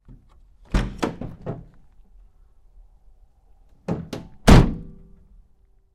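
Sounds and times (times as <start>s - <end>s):
GMC Savana truck rear door opening and closing hard: 0.0s - 1.8s, 3.8s - 5.2s.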